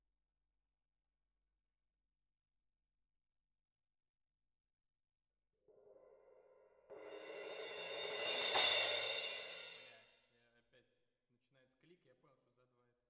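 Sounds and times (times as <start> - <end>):
percussion: 5.7 - 10.1.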